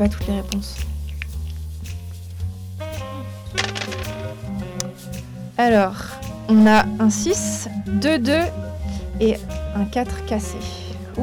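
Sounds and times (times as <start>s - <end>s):
speech: 0.0s - 0.9s, 5.6s - 8.6s, 9.2s - 11.2s
dice being thrown: 3.6s - 5.0s.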